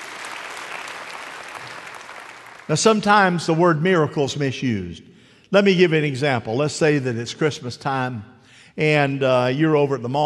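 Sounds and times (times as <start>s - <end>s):
audience clapping: 0.0s - 3.1s
speech: 2.7s - 10.2s.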